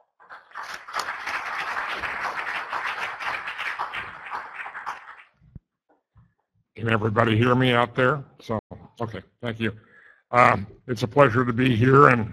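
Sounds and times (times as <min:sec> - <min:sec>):
applause welcoming a speaker to a talk on soybean yield: 0:00.0 - 0:05.4
speech: 0:06.8 - 0:12.3.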